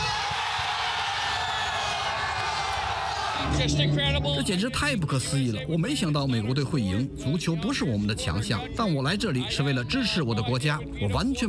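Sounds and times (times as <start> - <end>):
whoops and yells: 0.0 - 3.5
large crowd roaring and cheering: 0.0 - 3.8
speech: 3.4 - 11.4.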